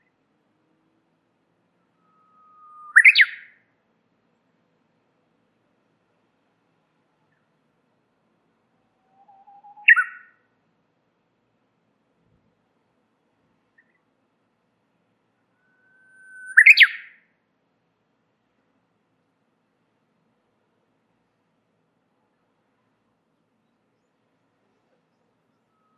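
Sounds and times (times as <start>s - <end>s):
warbler phrase of soft low whistles and a loud chirpy flourish: 2.1s - 3.4s, 9.3s - 10.2s, 15.6s - 17.1s.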